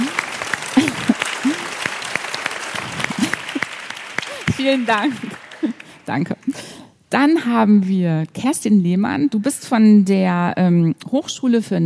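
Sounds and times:
laughter: 0.0s - 2.1s, 2.7s - 5.9s
audience applause: 0.0s - 6.2s
speech: 4.6s - 11.8s.

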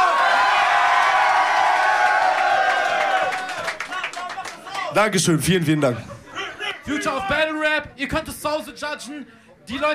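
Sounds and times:
loud crowd cheering and whooping: 0.0s - 3.8s
dense clapping: 2.4s - 4.9s
speech: 5.0s - 6.1s, 6.8s - 9.9s.

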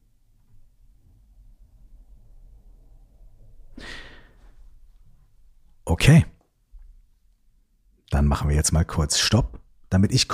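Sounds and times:
faint low hum: 0.0s - 10.3s
slow sigh-like breath during a guided breathing exercise: 3.7s - 4.8s
speech: 6.0s - 6.3s, 8.2s - 10.3s.

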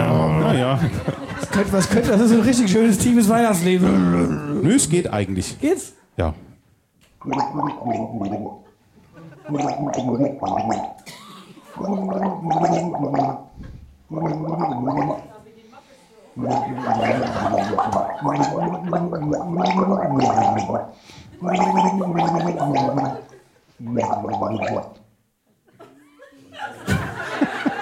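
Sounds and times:
person gargling water: 0.0s - 0.6s, 3.8s - 4.8s, 7.2s - 11.1s, 11.7s - 15.3s, 16.4s - 25.0s
laughter: 0.5s - 2.7s, 8.6s - 9.6s, 11.0s - 11.8s, 16.6s - 18.3s, 25.5s - 27.8s
speech: 0.7s - 6.5s, 7.2s - 8.6s, 9.5s - 11.2s, 11.8s - 15.3s, 16.4s - 25.0s.

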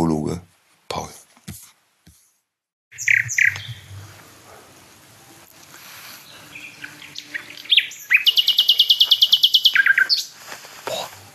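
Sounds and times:
nightingale singing: 2.9s - 4.3s, 5.1s - 11.0s.

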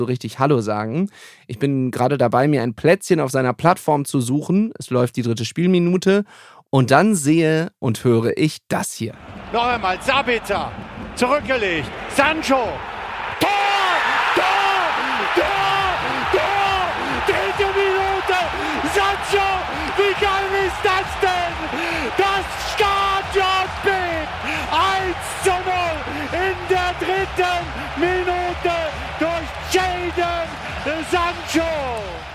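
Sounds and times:
speech: 0.0s - 13.6s
stadium crowd roaring after a goal: 9.2s - 32.3s.

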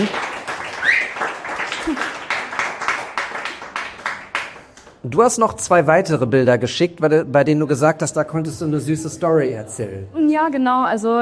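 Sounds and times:
audience applause: 0.0s - 5.1s
speech: 5.1s - 11.2s.

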